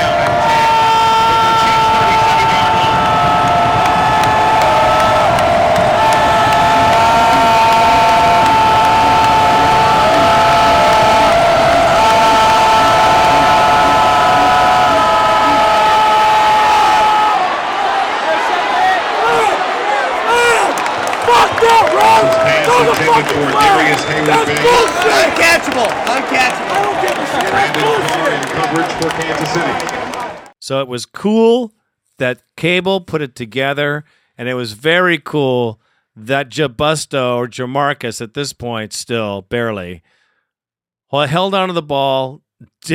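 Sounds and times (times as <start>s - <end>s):
scattered shouts and voices: 0.0s - 30.5s
stadium crowd roaring: 0.0s - 30.5s
speech: 30.7s - 40.1s, 41.1s - 42.9s.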